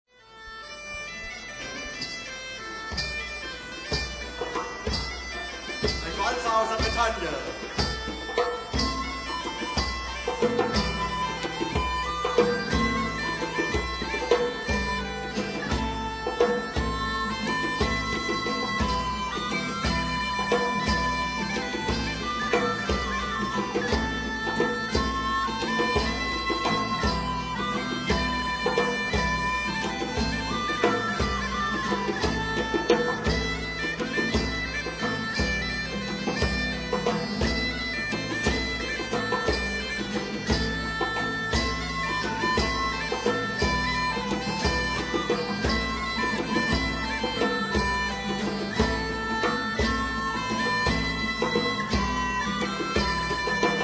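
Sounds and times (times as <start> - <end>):
Breton waltz: 0.3 - 53.8.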